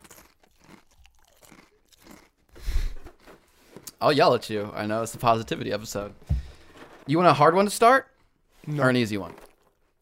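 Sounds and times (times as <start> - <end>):
eating crunchy food, chewing: 0.0 - 4.0, 9.2 - 10.0
speech: 4.0 - 6.3, 7.1 - 8.1, 8.7 - 9.4.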